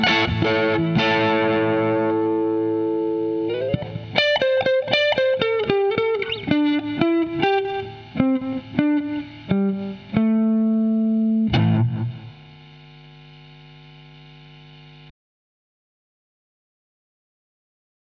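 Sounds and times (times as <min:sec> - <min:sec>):
blues music: 0:00.0 - 0:12.4.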